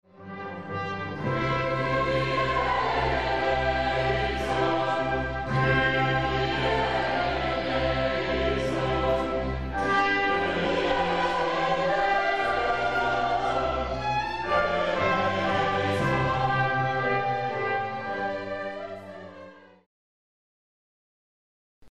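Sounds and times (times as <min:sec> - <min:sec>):
young choir and parish orchestra: 0:00.1 - 0:19.9.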